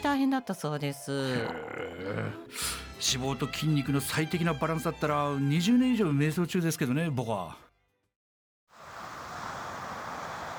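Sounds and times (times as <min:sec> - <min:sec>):
speech: 0:00.0 - 0:07.6
wind on a seaside overlooking the East China Sea: 0:08.7 - 0:10.5
waves on a seaside overlooking the East China Sea: 0:08.8 - 0:10.5.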